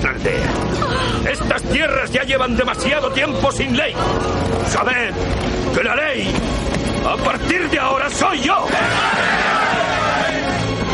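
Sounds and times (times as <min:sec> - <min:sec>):
speech: 0:00.0 - 0:10.0
band of men cheering in a medieval adventure film: 0:08.2 - 0:10.9.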